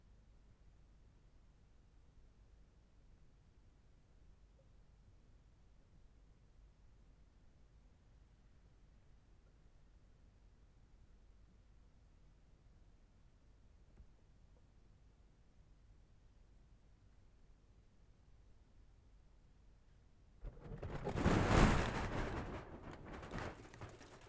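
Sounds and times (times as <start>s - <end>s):
snow on aluminium foil: 20.5s - 24.2s.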